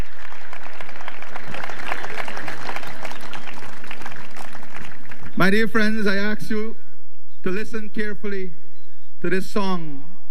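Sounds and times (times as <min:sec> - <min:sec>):
audience applause: 0:00.0 - 0:05.4
speech: 0:05.4 - 0:06.8, 0:07.4 - 0:08.6, 0:09.2 - 0:10.1.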